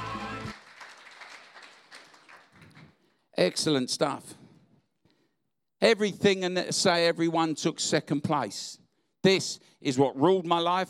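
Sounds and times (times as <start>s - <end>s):
crowd clapping: 0.0s - 3.1s
speech: 3.4s - 4.4s, 5.8s - 10.8s.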